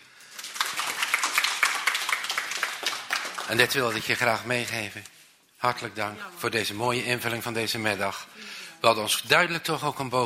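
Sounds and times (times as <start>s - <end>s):
audience applause: 0.1s - 4.4s
speech: 3.5s - 10.2s.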